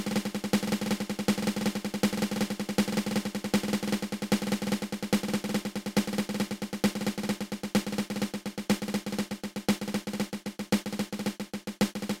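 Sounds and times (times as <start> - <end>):
drum drag paradiddle: 0.0 - 12.1.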